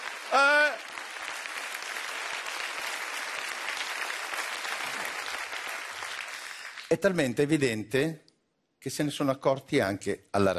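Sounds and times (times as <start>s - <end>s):
audience applause: 0.0s - 6.9s
person whooping: 0.3s - 0.9s
speech: 6.9s - 10.5s.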